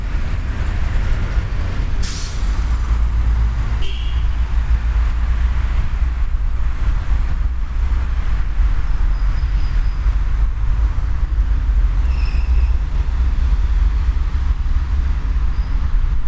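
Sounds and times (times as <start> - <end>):
underground train traffic: 0.0 - 16.2.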